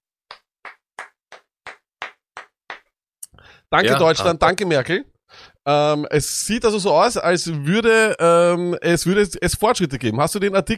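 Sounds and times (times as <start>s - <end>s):
slow hand claps: 0.3s - 2.9s
speech: 3.7s - 10.7s.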